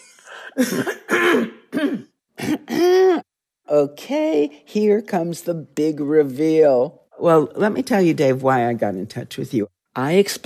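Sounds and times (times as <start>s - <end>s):
person clearing throat: 0.0s - 3.3s
speech: 0.5s - 1.0s, 3.8s - 10.4s.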